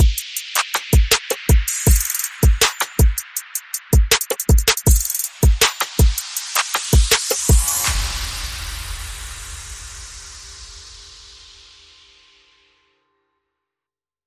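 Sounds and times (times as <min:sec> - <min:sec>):
percussion: 0:00.0 - 0:12.7
sound effects: 0:07.5 - 0:11.5.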